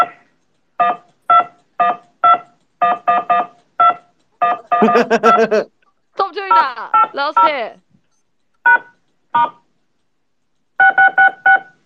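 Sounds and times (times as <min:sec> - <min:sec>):
phone keypad button beeps: 0:00.8 - 0:05.4, 0:06.5 - 0:07.7, 0:08.6 - 0:09.6, 0:10.8 - 0:11.8
laughter: 0:04.8 - 0:05.7
speech: 0:04.8 - 0:05.7, 0:07.2 - 0:07.9.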